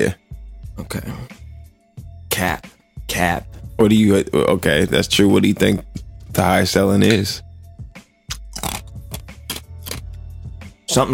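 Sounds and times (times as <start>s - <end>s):
speech: 0.0s - 0.2s, 0.8s - 1.4s, 2.4s - 7.5s, 10.9s - 11.1s
person chewing ice: 8.3s - 10.1s.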